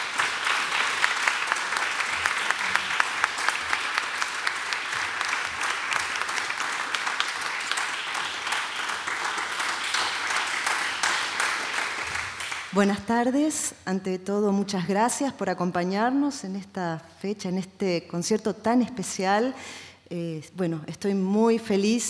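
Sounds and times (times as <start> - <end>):
audience applause welcoming a performer: 0.0 - 12.8
speech: 12.8 - 22.0.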